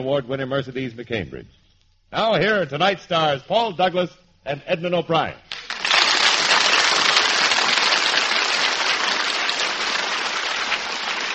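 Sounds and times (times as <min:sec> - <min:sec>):
speech: 0:00.0 - 0:05.4
studio audience applause: 0:05.5 - 0:11.3.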